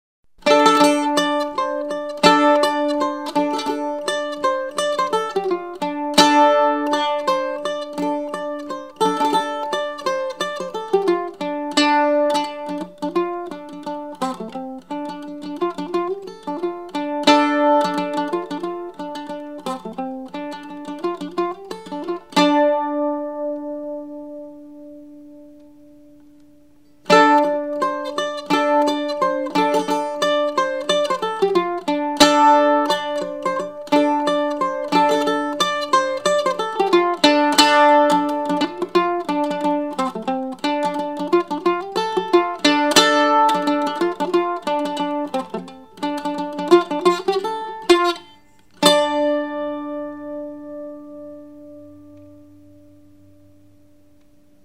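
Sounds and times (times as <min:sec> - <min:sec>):
Appalachian mandolin: 0:00.4 - 0:54.6.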